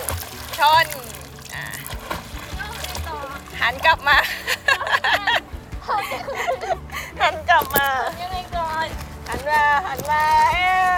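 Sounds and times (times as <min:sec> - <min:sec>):
water splashing as a child kicks in a pool holding a foam float: 0:00.0 - 0:05.0, 0:07.5 - 0:10.9
speech: 0:00.6 - 0:01.1, 0:03.6 - 0:05.3, 0:07.2 - 0:10.9
laughter: 0:04.1 - 0:07.5.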